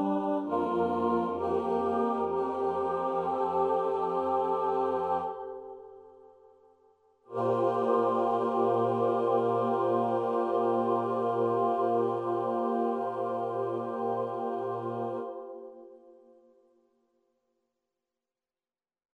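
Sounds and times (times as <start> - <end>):
night song: 0.0 - 6.2, 7.3 - 15.8.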